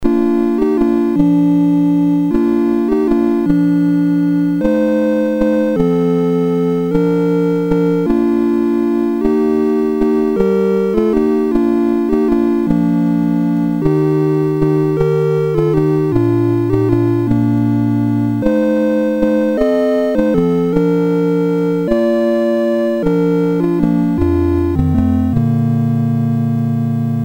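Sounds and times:
Christmas music on Commodore MOS6581R3 chip: 0.0 - 27.2.

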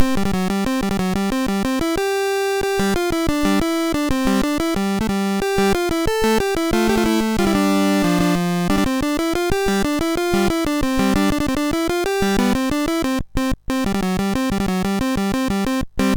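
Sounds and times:
MOS6581R3 chip music: 0.0 - 16.1.

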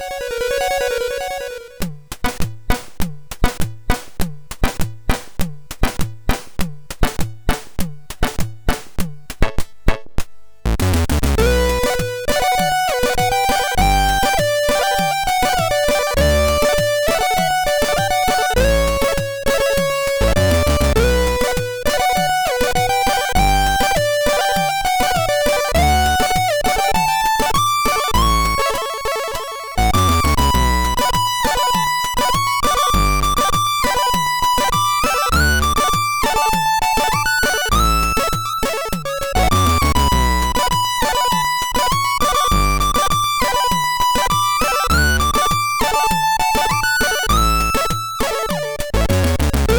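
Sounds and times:
MOS6581R3 chip tune: 0.0 - 5.2, 7.0 - 49.7.

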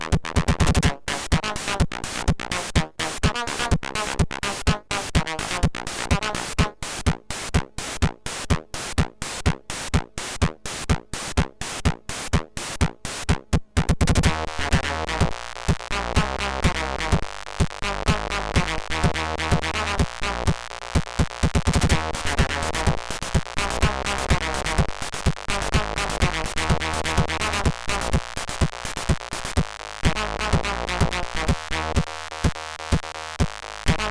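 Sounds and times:
SID 6581 chip techno music: 0.2 - 34.0.

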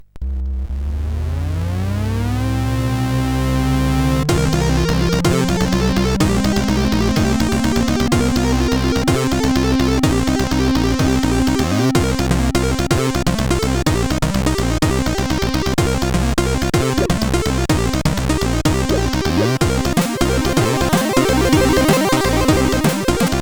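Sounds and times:
chiptune intro on CSG8580R5 SID chip: 1.1 - 23.4.

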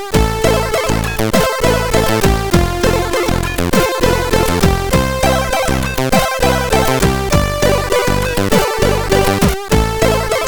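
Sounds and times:
jingle on SID CSG8580R5 chip: 0.2 - 10.4.

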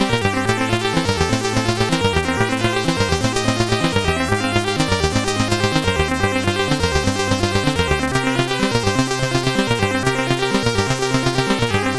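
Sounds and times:
intro music: 0.1 - 11.9.

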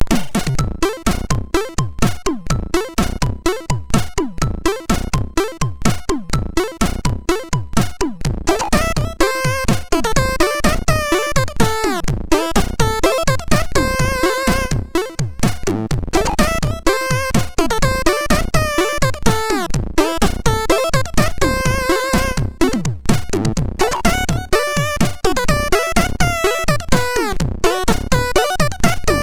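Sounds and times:
chiptune on a MOS6581R2 SID chip: 0.0 - 29.2.

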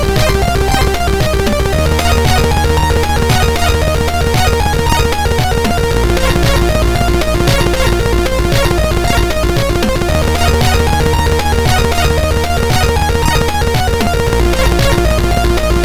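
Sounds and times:
drummer playing drums: 0.0 - 15.8.

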